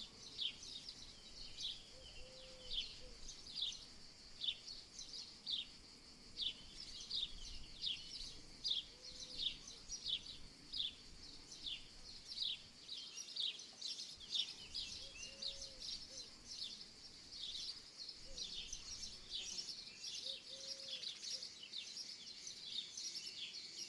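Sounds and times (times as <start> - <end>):
cicadas in summer fields: 0.0 - 23.8
insects in summer fields: 0.0 - 23.8
little birds in summer fields in the morning: 0.0 - 23.8
owl in summer fields: 1.8 - 3.2, 8.8 - 9.8, 14.8 - 16.3, 20.2 - 21.5.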